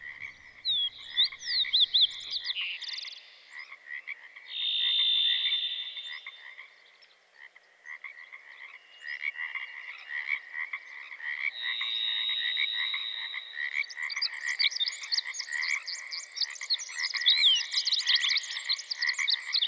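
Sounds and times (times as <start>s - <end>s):
songbird trill: 0.0s - 3.4s, 4.5s - 7.0s, 11.5s - 19.6s
Pacific tree frogs chorus: 0.0s - 19.6s
bird level whistle: 4.5s - 6.2s, 11.6s - 13.6s.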